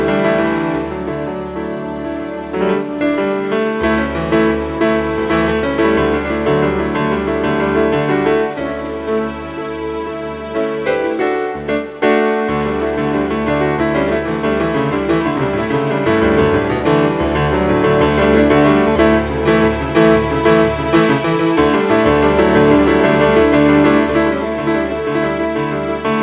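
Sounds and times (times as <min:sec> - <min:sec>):
piano arpeggio: 0:00.0 - 0:26.2.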